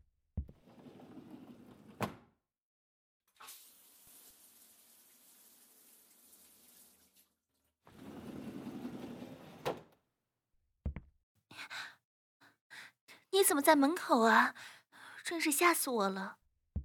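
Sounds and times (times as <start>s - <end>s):
thumps and bumps: 0.4s - 0.6s
shower water running: 3.4s - 7.5s
speech: 13.4s - 16.4s.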